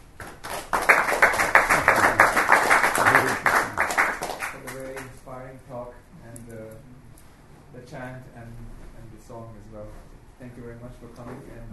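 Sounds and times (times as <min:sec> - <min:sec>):
audience round of applause: 0:00.2 - 0:05.0
speech: 0:09.7 - 0:11.7.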